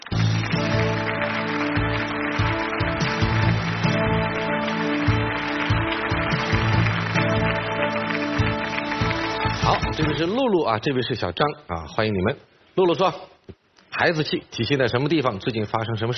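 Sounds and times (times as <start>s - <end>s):
audience applause: 0.0s - 10.5s
speech: 10.2s - 16.1s.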